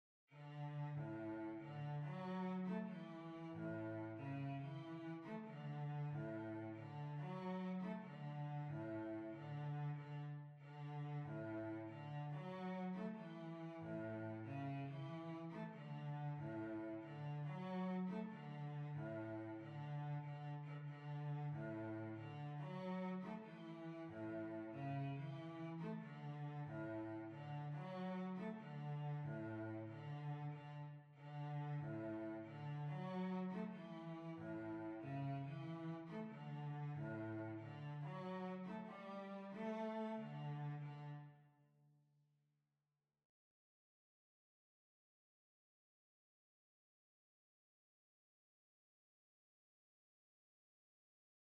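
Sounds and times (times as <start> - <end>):
violoncello quadrille: 0.3 - 41.4.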